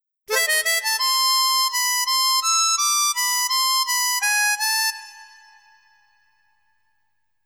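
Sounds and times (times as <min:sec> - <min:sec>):
harmonica: 0:00.3 - 0:06.2.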